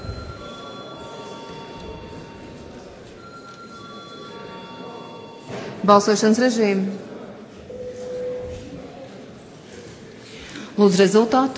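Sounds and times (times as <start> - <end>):
parliament bell ringing before a vote: 0.0 - 5.9
speech: 5.8 - 7.1, 10.8 - 11.5.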